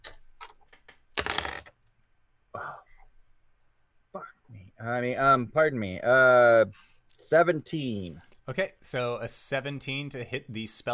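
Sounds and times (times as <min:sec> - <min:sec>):
dice being rolled: 0:01.2 - 0:01.8
speech: 0:04.8 - 0:10.9.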